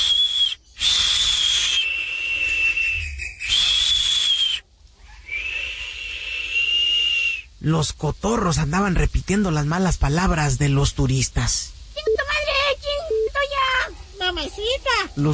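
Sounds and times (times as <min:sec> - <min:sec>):
toucans whistling from tree branches: 0:00.0 - 0:07.5
breathy hiss: 0:00.0 - 0:15.3
speech: 0:07.6 - 0:11.8, 0:14.5 - 0:15.3.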